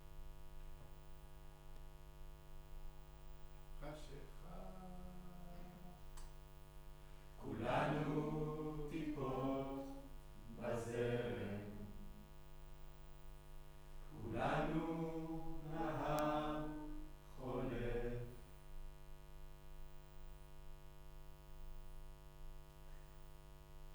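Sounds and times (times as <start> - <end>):
choir singing in room: 7.4 - 12.2, 14.1 - 18.4.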